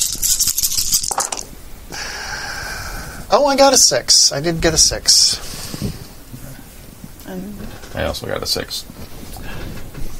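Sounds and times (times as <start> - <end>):
dice being rolled: 0.0 - 1.5
speech: 3.3 - 5.5, 7.4 - 8.9.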